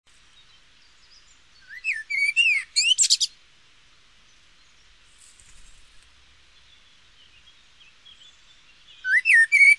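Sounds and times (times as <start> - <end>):
Eurasian blackbird calls: 1.7 - 3.3.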